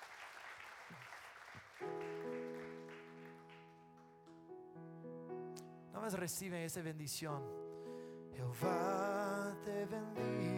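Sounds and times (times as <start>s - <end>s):
audience applause: 0.0s - 4.1s
speech: 6.0s - 7.6s, 8.4s - 9.0s, 9.6s - 10.5s.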